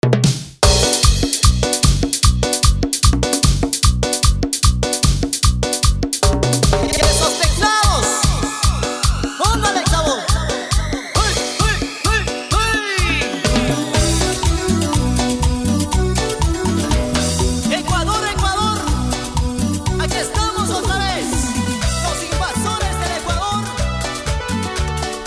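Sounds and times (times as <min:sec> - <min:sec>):
rhythm change from 150 to 122: 0:00.0 - 0:25.2.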